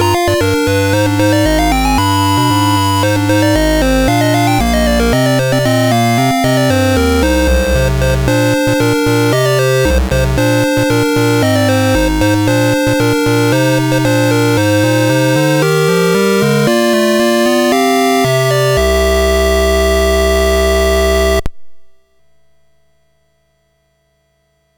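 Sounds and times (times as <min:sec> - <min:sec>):
SID chiptune music on MOS6581R4 chip: 0:00.0 - 0:21.5.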